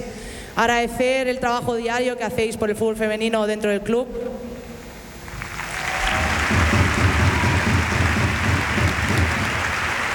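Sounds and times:
speech: 0:00.6 - 0:04.4
applause from the stands: 0:05.2 - 0:10.1.

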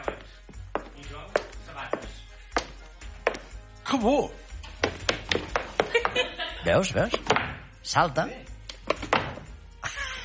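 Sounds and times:
synchronized footsteps with special shoes: 0:00.0 - 0:03.6, 0:04.6 - 0:07.7
speech: 0:03.9 - 0:04.4, 0:06.6 - 0:08.5
laughter: 0:05.8 - 0:06.9, 0:09.8 - 0:10.2.

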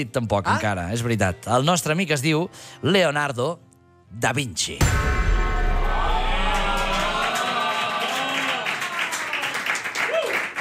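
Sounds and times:
speech: 0:00.0 - 0:05.2
children applauding: 0:06.0 - 0:10.5.

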